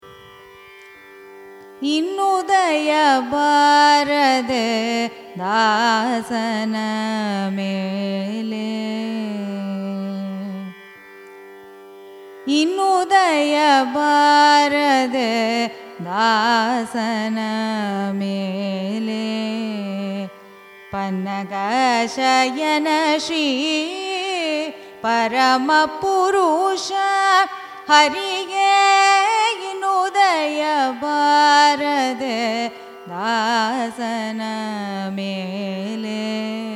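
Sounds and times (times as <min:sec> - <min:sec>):
carnatic raga music: 0:00.0 - 0:36.7.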